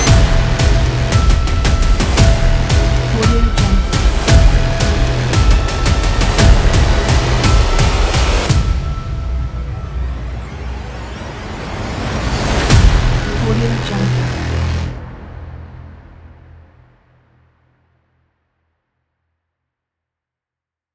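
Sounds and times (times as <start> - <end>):
action trailer music: 0.0 - 16.7.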